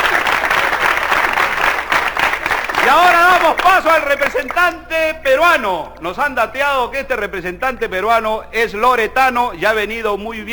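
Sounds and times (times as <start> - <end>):
loud audience applause for a Chilean contestant at a live comedy show: 0.0 - 4.7
speech: 2.9 - 10.5.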